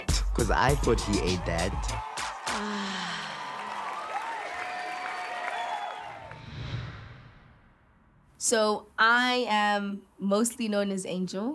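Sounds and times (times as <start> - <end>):
audience applause and cheering: 0.3 - 6.8
speech: 0.4 - 3.0, 8.5 - 11.5.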